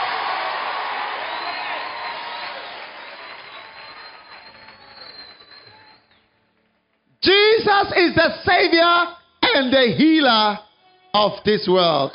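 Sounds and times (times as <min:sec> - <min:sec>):
audience clapping: 0:00.0 - 0:07.2
speech: 0:07.7 - 0:12.1.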